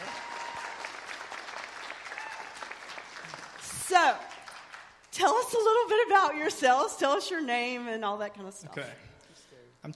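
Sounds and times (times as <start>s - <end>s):
audience applause welcoming the speakers: 0.0s - 5.0s
speech: 3.9s - 4.3s, 5.2s - 9.1s.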